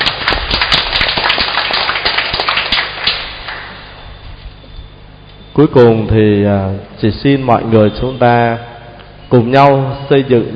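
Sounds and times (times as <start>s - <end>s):
crowd applause: 0.0s - 4.0s
speech: 5.6s - 8.7s, 9.3s - 10.5s.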